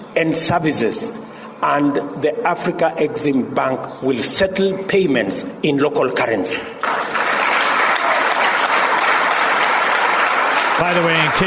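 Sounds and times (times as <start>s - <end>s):
speech: 0.2s - 6.8s, 10.8s - 11.4s
audience clapping: 6.8s - 11.4s.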